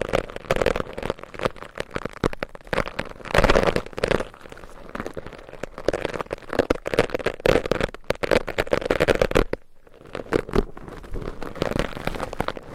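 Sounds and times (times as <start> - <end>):
layered scratching across a microphone: 0.0 - 12.7.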